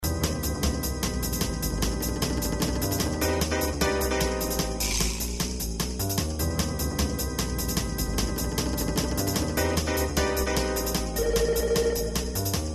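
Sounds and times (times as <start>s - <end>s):
jazz music: 0.0s - 12.7s.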